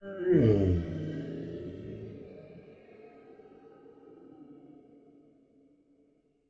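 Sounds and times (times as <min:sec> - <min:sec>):
ice giant death growl vocals: 0:00.0 - 0:02.8.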